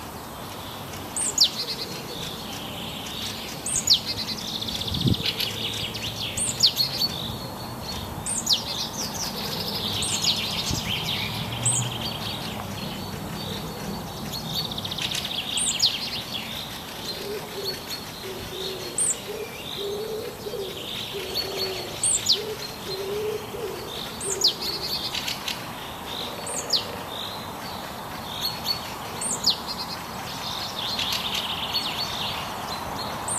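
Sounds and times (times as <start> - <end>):
forest birdsong: 0.0 - 33.3.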